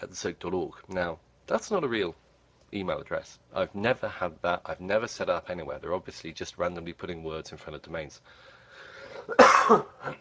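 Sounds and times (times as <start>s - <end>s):
speech: 0.0s - 8.5s, 9.3s - 10.2s
person coughing: 9.1s - 10.2s.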